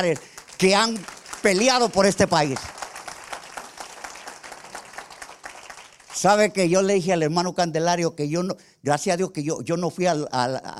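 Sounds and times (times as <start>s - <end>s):
speech: 0.0s - 2.8s, 6.2s - 10.7s
audience applauding: 0.0s - 6.5s.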